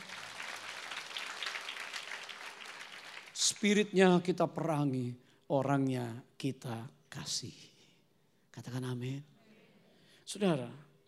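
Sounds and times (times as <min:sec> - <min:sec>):
audience clapping: 0:00.0 - 0:03.6
speech: 0:03.5 - 0:07.7, 0:08.6 - 0:09.3, 0:10.3 - 0:10.9.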